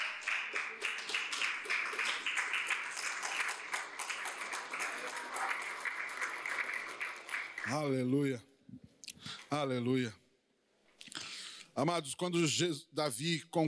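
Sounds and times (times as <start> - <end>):
audience applause: 0.0 - 8.0
speech: 7.7 - 8.8, 9.5 - 10.2, 11.8 - 13.6.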